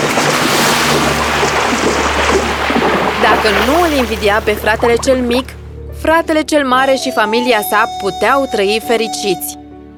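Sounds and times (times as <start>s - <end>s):
boat sinking into the sea: 0.0s - 5.6s
speech: 3.4s - 9.6s.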